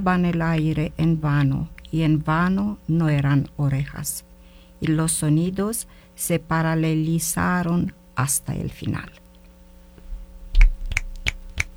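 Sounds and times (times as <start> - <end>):
speech: 0.0 - 9.2
finger snapping: 10.6 - 11.7.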